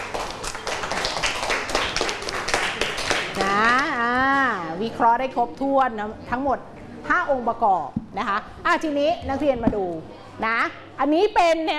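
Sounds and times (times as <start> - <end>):
students clapping hands: 0.0 - 3.9
speech: 4.8 - 11.7.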